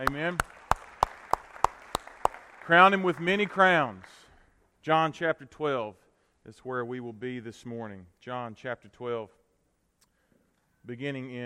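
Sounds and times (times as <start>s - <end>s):
speech: 0.0s - 0.6s, 2.7s - 4.2s, 4.8s - 9.4s, 10.8s - 11.4s
audience clapping: 0.0s - 4.3s.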